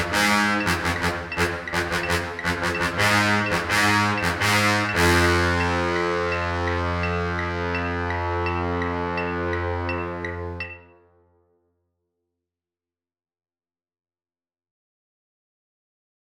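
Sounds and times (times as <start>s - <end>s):
marching band baritone saxophone: 0.0s - 10.9s
marching band bass trombone: 0.0s - 11.0s
marching band tuba: 0.0s - 11.0s.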